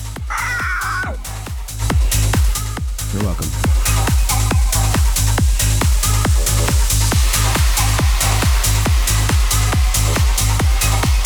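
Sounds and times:
steady thumping beat: 0.0 - 11.2
human voice screeching in imitation of a bird's cry: 0.3 - 1.2
speech: 3.1 - 4.2.

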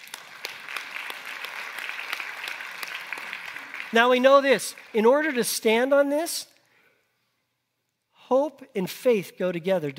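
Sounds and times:
audience applause: 0.0 - 5.5
speech: 3.9 - 6.5, 8.3 - 9.9.

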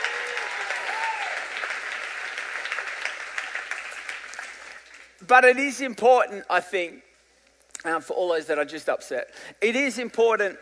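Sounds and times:
audience clapping: 0.0 - 5.2
speech: 5.3 - 7.1, 7.8 - 10.6.

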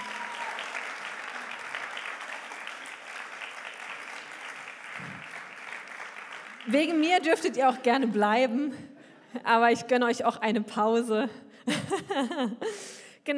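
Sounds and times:
audience applauding: 0.0 - 7.2
speech: 6.6 - 13.3
laughter: 11.7 - 12.6.

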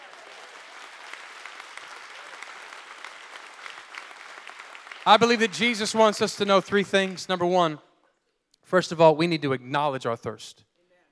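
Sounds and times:
audience clapping hands: 0.0 - 7.8
speech: 5.0 - 7.9, 8.7 - 10.7.

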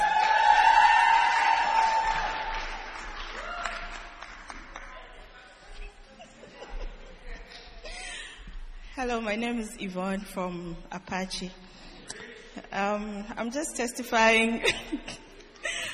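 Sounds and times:
audience round of applause: 0.0 - 5.4
laughter: 4.8 - 8.4, 14.6 - 15.9
speech: 9.0 - 11.8, 12.7 - 15.2.

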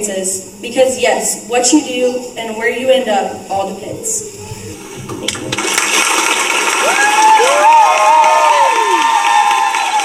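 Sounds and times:
speech: 0.0 - 5.2
crowd cheering: 6.0 - 10.0.

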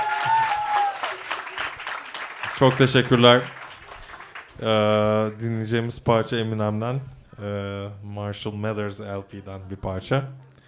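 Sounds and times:
crowd applauding: 0.0 - 4.8
speech: 2.6 - 3.6, 4.6 - 10.5.

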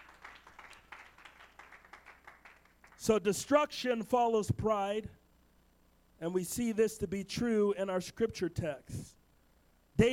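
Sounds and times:
crowd clapping in a steady rhythmic beat: 0.0 - 3.1
speech: 3.0 - 5.2, 6.2 - 9.2, 10.0 - 10.1.

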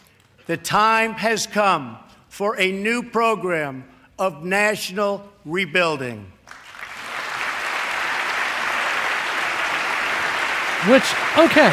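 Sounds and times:
speech: 0.5 - 6.6, 10.8 - 11.7
audience applause in played speech: 6.5 - 11.7.

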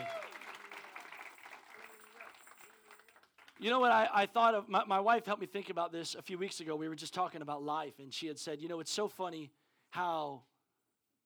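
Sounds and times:
round of applause: 0.0 - 4.1
speech: 3.6 - 10.5.

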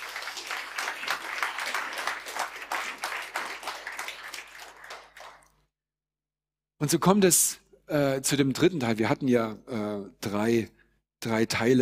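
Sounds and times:
audience applause: 0.0 - 5.6
speech: 6.8 - 11.8.

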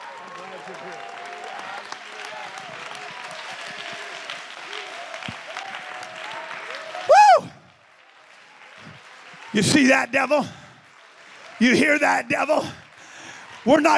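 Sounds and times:
audience clapping: 0.0 - 13.9
voices cheering: 0.0 - 13.9
speech: 0.7 - 1.1, 9.6 - 10.6, 11.6 - 12.8, 13.6 - 13.9
high-pitched whoop: 5.5 - 7.7.

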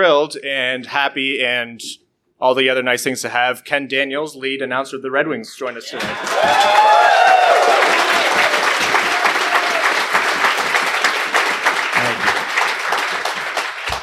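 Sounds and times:
speech: 0.0 - 7.9
sustained audience applause from a crowd: 5.9 - 14.0.

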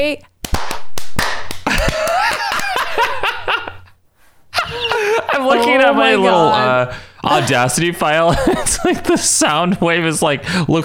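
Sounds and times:
speech: 0.0 - 0.3, 5.2 - 10.8
hand clap: 0.4 - 3.1
laughter: 1.6 - 10.8.

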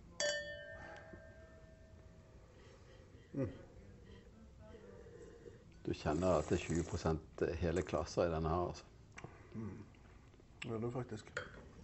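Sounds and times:
glasses clinking in a toast: 0.0 - 2.1
speech: 3.4 - 3.7, 5.8 - 8.9, 9.6 - 9.9, 10.6 - 11.6.

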